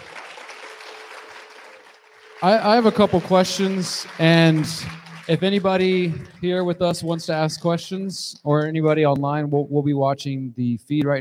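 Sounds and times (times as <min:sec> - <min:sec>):
audience applause: 0:00.0 - 0:07.1
speech: 0:02.4 - 0:11.1.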